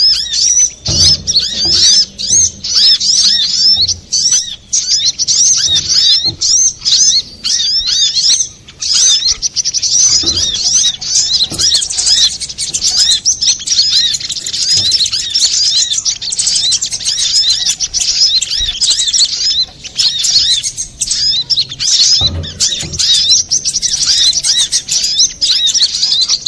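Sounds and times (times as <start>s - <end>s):
soft low knocks: 0.0s - 7.8s, 10.1s - 15.4s, 19.6s - 25.4s
little spiderhunter song: 0.0s - 26.4s.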